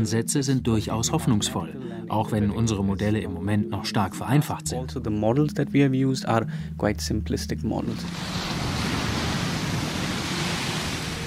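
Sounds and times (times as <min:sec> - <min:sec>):
speech: 0:00.0 - 0:08.6
monster rogue water waves churning in a wave tank: 0:07.9 - 0:11.2.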